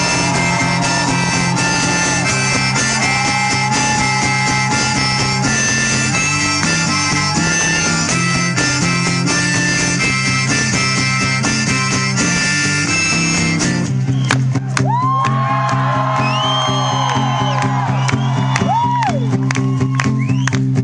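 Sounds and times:
crowd clapping: 0.0 - 8.1, 14.1 - 20.8
crowd cheering: 0.0 - 11.8, 12.4 - 20.8.

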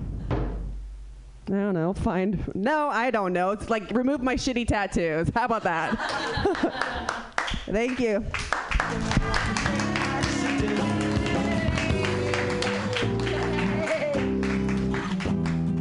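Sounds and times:
speech: 1.5 - 9.0
laughter: 5.6 - 7.3
audience applause: 6.1 - 7.6, 8.4 - 15.7
sustained tones of music: 8.8 - 15.7.

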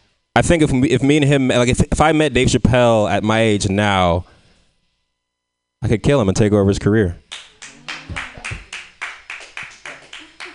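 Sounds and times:
speech: 0.4 - 4.3, 5.8 - 7.2
sparse handclaps from a small audience: 7.3 - 10.5.

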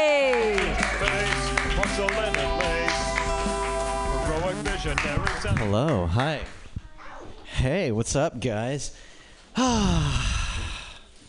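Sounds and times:
audience clapping at a comedy club open mic: 0.0 - 6.7
speech: 4.9 - 6.6, 7.6 - 10.3.

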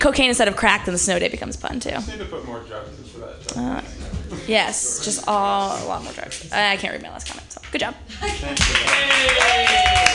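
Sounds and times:
speech: 0.0 - 10.1
audience clapping: 8.5 - 10.1.

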